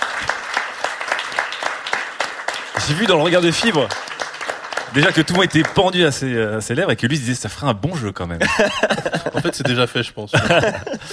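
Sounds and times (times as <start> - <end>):
audience applause: 0.0 - 6.4
speech: 2.9 - 4.2, 4.9 - 11.1
laughter: 8.4 - 11.1.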